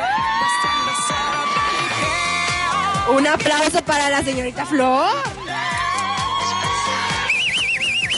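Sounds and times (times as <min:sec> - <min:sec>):
crowd cheering with shouts and whoops: 0:00.0 - 0:03.1, 0:05.2 - 0:08.1
speech: 0:03.1 - 0:05.4.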